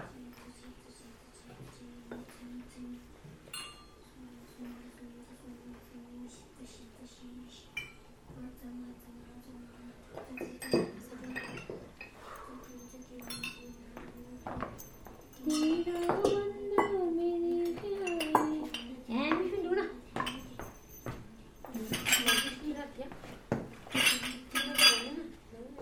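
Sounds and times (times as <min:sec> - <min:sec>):
butter lamps in Nepal: 0:10.2 - 0:25.2.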